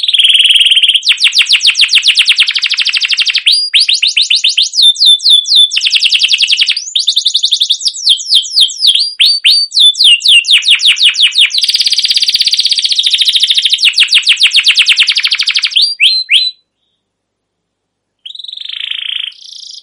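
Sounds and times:
canary singing: 0:00.0 - 0:17.0, 0:18.2 - 0:19.8.

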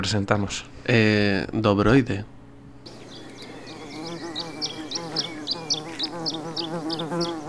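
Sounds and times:
speech: 0:00.0 - 0:02.4
bumblebee buzzing: 0:02.9 - 0:07.4.

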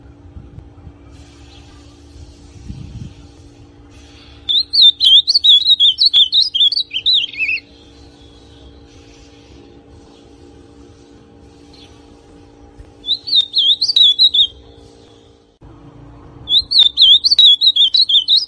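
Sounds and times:
ultramarine grosbeak song: 0:04.0 - 0:08.8, 0:13.0 - 0:15.4, 0:16.5 - 0:18.4.

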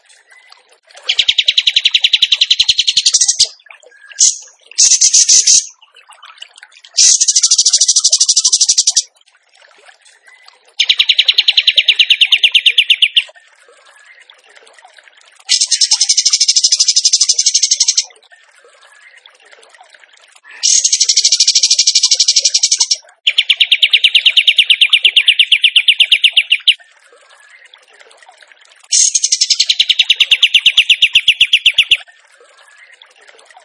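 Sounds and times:
bird singing trills: 0:01.1 - 0:05.8, 0:07.0 - 0:09.1, 0:10.8 - 0:13.3, 0:15.5 - 0:18.1, 0:20.6 - 0:26.8, 0:28.9 - 0:32.1.

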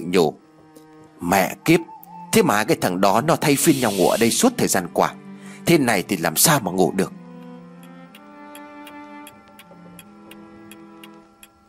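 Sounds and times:
speech: 0:00.1 - 0:00.4, 0:01.2 - 0:07.2
low sustained musical drone: 0:00.4 - 0:11.6
clock ticking: 0:07.3 - 0:11.6.

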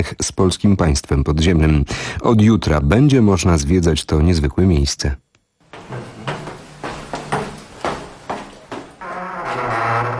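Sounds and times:
speech: 0:00.0 - 0:05.2
heavy old metal prison cell door creaking as it swings open: 0:09.0 - 0:10.1.

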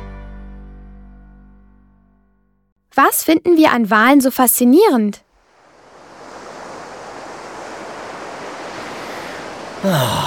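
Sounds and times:
speech: 0:03.0 - 0:05.2, 0:09.8 - 0:10.2
breaking surf on a North Sea beach: 0:05.4 - 0:10.2
wind rushing: 0:05.4 - 0:10.2.

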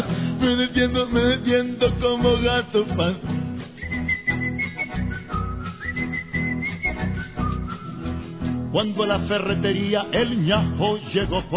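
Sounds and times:
speech: 0:00.0 - 0:03.3, 0:08.7 - 0:11.5
person whistling a little tune: 0:03.8 - 0:08.2.

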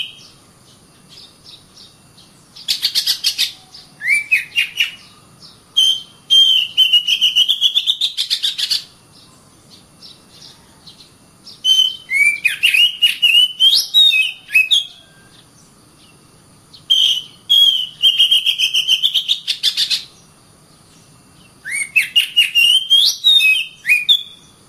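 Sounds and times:
Oriental magpie-robin song: 0:00.0 - 0:16.2, 0:16.8 - 0:24.6.

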